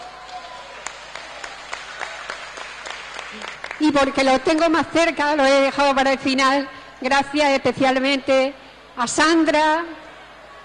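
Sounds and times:
crowd applauding: 0.0s - 4.6s
speech: 3.3s - 10.0s.

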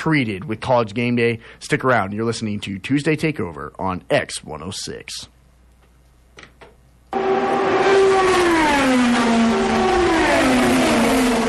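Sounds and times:
speech: 0.0s - 5.3s
race car engines roaring: 7.2s - 11.4s.

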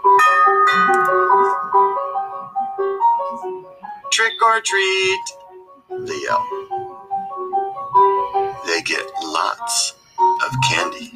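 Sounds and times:
doorbell chime melody: 0.1s - 3.2s
speech: 4.2s - 5.4s, 6.0s - 6.6s, 8.7s - 11.1s.

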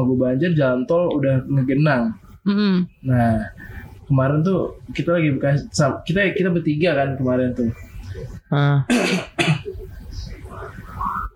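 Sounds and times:
speech: 0.0s - 10.3s
coughing and throat clearing: 8.9s - 9.8s.

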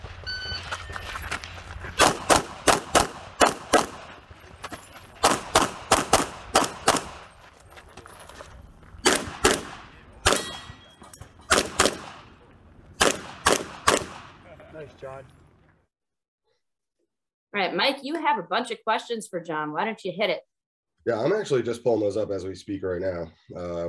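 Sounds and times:
gunfire from a firearms training shooting video: 2.0s - 4.2s, 5.2s - 7.4s, 9.0s - 10.8s, 11.5s - 12.4s, 13.0s - 14.5s
speech: 15.0s - 15.4s, 17.7s - 23.8s.

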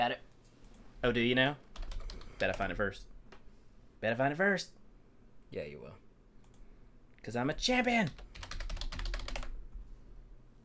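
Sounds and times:
speech: 0.0s - 0.3s, 1.0s - 1.6s, 2.4s - 3.1s, 4.0s - 4.8s, 5.5s - 6.0s, 7.2s - 8.4s
rapid typing on a computer keyboard: 1.8s - 2.7s, 8.1s - 9.6s.

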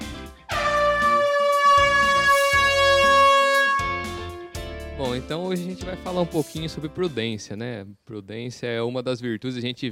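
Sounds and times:
horn sound effect: 0.5s - 4.8s
speech: 5.1s - 9.8s.

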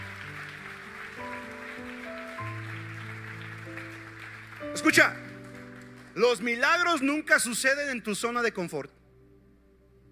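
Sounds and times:
audience applause: 0.0s - 6.6s
speech: 4.8s - 5.2s, 6.2s - 9.0s.

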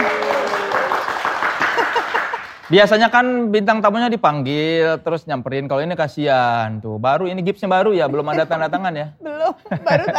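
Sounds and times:
voices cheering: 0.0s - 1.1s
audience applause: 0.0s - 2.7s
laughter: 1.6s - 2.4s, 9.6s - 10.1s
speech: 2.7s - 10.1s.

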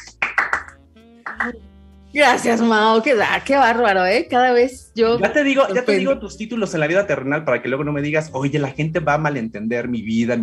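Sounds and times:
applause: 0.0s - 1.6s
speech: 1.4s - 10.4s.

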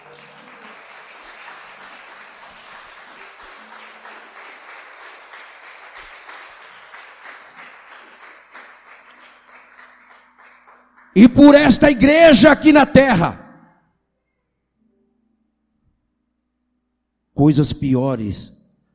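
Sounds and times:
audience applauding: 0.0s - 12.2s
speech: 11.2s - 13.4s, 17.4s - 18.6s.

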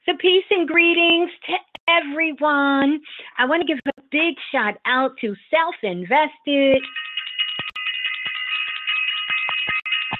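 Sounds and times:
speech: 0.1s - 7.0s
bell ringing: 6.8s - 10.1s.

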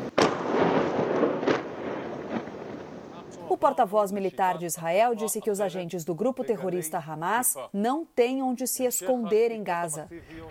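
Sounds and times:
bombardment explosions: 0.0s - 3.6s
speech: 3.6s - 10.4s.

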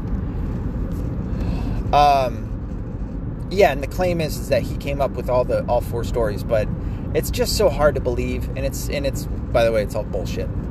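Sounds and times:
highway traffic rumble: 0.0s - 10.6s
speech: 1.9s - 2.4s, 3.5s - 10.6s.

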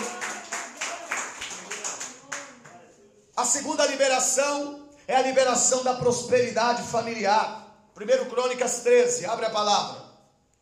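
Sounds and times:
audience clapping: 0.0s - 2.8s
speech: 3.4s - 10.0s.

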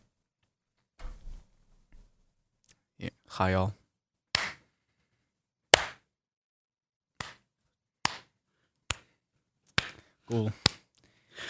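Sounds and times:
speech: 3.0s - 3.8s, 10.3s - 10.7s
hand claps for audio synchronisation: 4.4s - 4.6s, 5.7s - 6.0s, 7.2s - 11.0s.

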